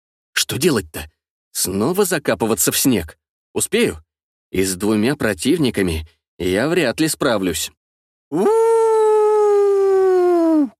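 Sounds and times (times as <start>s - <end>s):
speech: 0.5s - 8.8s
loud animal howl turning into panicked squeal: 8.3s - 10.7s.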